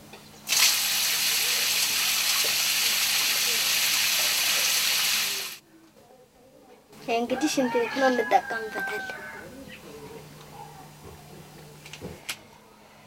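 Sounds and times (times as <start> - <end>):
water pouring from an outdoor shower used for washing feet: 0.5 - 5.6
speech: 7.1 - 9.3.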